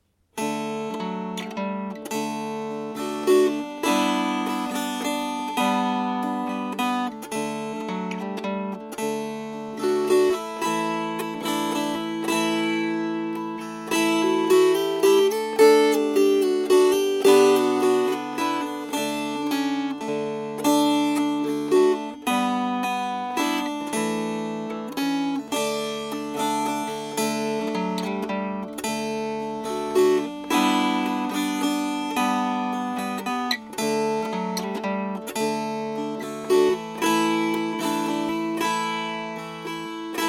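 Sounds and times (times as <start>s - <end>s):
strummed strings: 0.2s - 40.2s.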